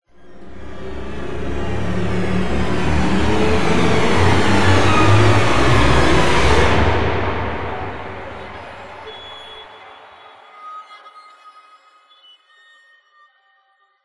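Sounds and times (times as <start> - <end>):
short music crescendo: 0.2 - 10.5.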